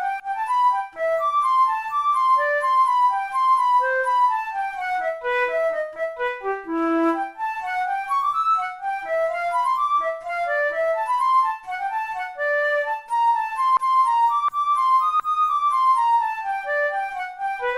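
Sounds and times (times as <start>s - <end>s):
flute playing a baroque gigue: 0.0s - 17.7s.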